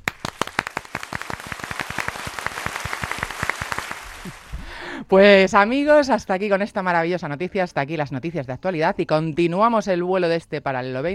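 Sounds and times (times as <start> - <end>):
small group clapping: 0.0 - 4.7
speech: 5.1 - 11.1.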